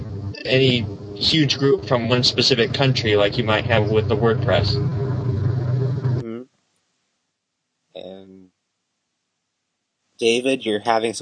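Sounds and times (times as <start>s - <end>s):
lawn tractor engine roaring: 0.0s - 6.2s
speech: 0.4s - 5.0s, 10.2s - 11.2s.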